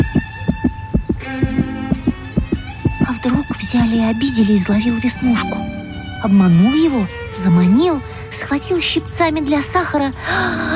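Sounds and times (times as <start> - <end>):
rapid heartbeat: 0.0 - 4.2
faint humming drone: 0.0 - 8.6
speech: 3.2 - 10.7.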